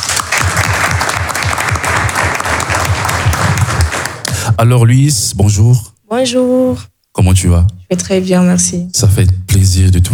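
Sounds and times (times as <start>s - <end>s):
audience applause: 0.0s - 4.4s
speech: 4.6s - 10.1s.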